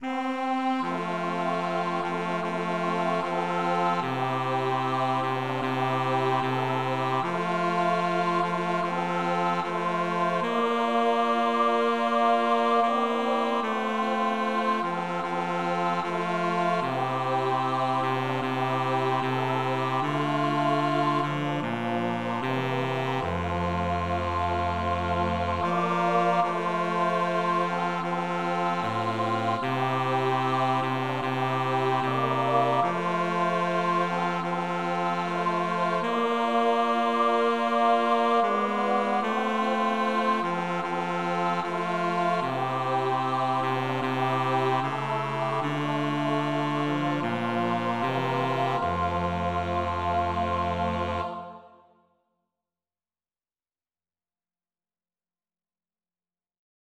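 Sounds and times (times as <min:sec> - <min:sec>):
bass: 0:00.0 - 0:51.6.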